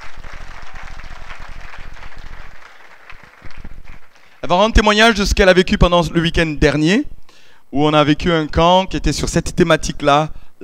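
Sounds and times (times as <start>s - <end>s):
audience applauding: 0.0s - 4.5s
speech: 4.5s - 7.1s, 7.7s - 10.6s.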